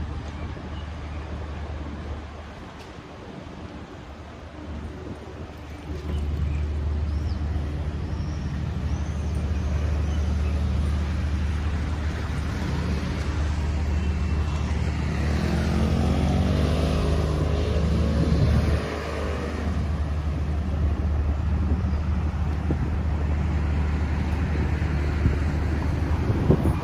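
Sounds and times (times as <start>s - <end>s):
traffic rumble on a street in Tel Aviv: 0.0s - 26.8s
passing engine: 5.6s - 26.8s.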